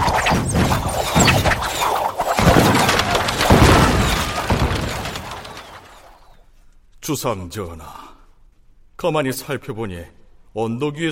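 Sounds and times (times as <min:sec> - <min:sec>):
cannons firing in a dramatized battle: 0:00.0 - 0:06.4
crashing shattering noise: 0:00.0 - 0:06.4
speech: 0:07.1 - 0:08.0, 0:09.0 - 0:11.1.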